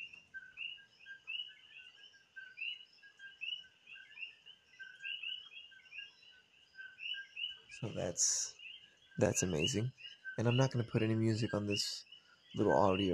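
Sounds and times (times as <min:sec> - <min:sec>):
chorus of coquí frogs calling: 0:00.0 - 0:13.1
speech: 0:07.8 - 0:08.6, 0:09.2 - 0:13.1.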